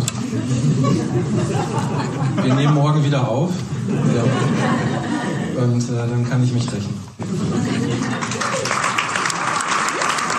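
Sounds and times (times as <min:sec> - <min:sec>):
laughter: 0:00.0 - 0:05.8, 0:07.2 - 0:10.3
speech: 0:00.4 - 0:07.6
applause: 0:08.0 - 0:10.3.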